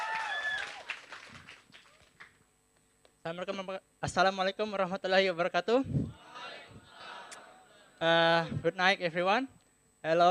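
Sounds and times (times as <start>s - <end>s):
audience applause: 0.0s - 2.4s
speech: 3.2s - 6.2s, 8.0s - 10.3s.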